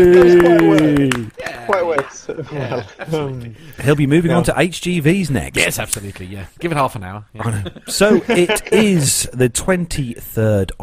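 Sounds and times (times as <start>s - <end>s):
speech: 0.0s - 1.3s, 2.0s - 10.8s
applause: 0.0s - 2.2s
laughter: 1.7s - 3.4s, 7.4s - 9.2s.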